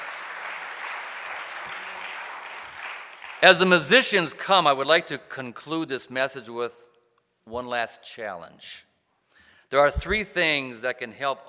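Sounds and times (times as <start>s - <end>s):
church congregation hand-clap applause after a sermon: 0.0s - 4.2s
speech: 3.4s - 6.9s, 7.5s - 8.9s, 9.7s - 11.4s.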